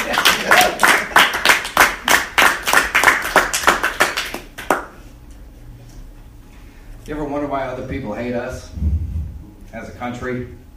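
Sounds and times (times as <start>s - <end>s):
crowd clapping in rhythm: 0.0s - 5.0s
speech: 7.5s - 8.9s, 9.7s - 10.6s.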